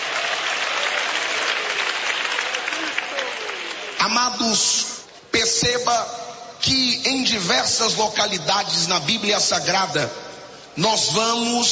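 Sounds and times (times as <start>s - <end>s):
audience clapping hands: 0.0s - 4.4s
speech: 4.0s - 10.2s, 10.8s - 11.7s.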